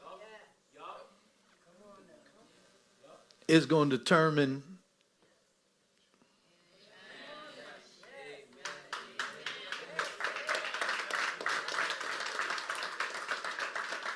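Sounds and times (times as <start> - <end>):
speech: 3.5 - 4.7
crowd clapping: 8.6 - 14.1.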